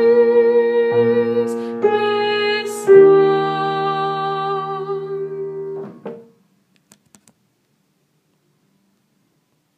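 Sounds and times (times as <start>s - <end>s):
tenor singing: 0.0s - 5.7s.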